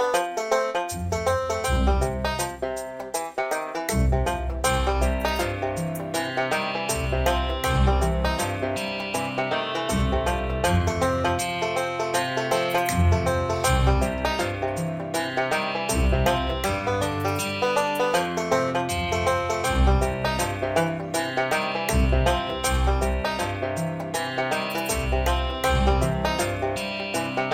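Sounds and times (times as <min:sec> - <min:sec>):
guitar playing: 0:00.0 - 0:27.5.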